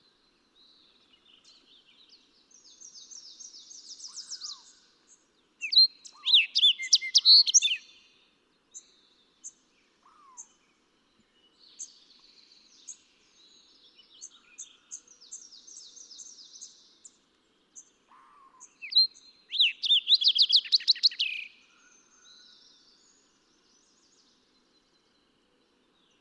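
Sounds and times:
fox sparrow calling: 0:05.6 - 0:07.9, 0:18.1 - 0:21.5.

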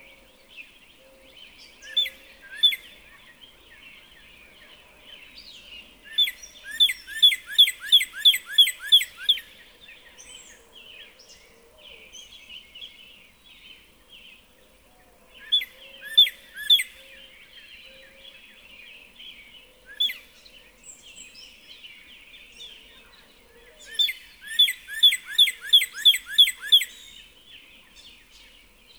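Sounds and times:
Northern cardinal song of rapidly repeated down-slurred whistled notes: 0:06.1 - 0:09.5, 0:15.5 - 0:17.1, 0:23.8 - 0:27.3.

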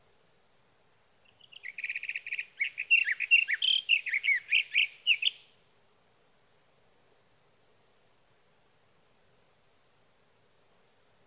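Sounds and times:
sage thrasher song: 0:01.3 - 0:05.5.

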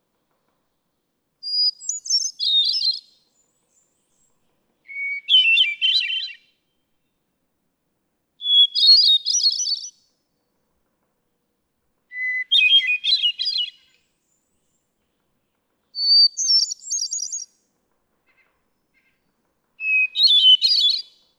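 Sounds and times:
hermit thrush singing: 0:01.4 - 0:04.3, 0:04.9 - 0:06.5, 0:08.4 - 0:10.0, 0:12.1 - 0:13.9, 0:16.0 - 0:17.5, 0:19.8 - 0:21.2.

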